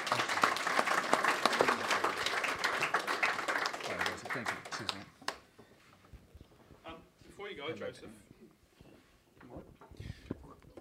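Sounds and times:
audience applause: 0.0s - 5.4s
speech: 4.4s - 5.1s, 7.7s - 8.3s.

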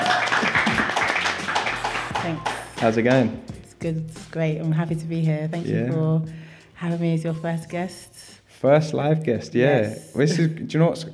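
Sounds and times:
audience applause: 0.0s - 3.3s
speech: 2.3s - 11.1s.

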